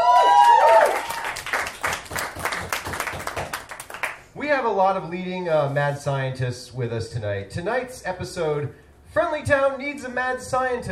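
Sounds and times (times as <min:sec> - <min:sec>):
audience applause at an improvisational comedy show: 0:00.0 - 0:04.2
speech: 0:04.6 - 0:10.9.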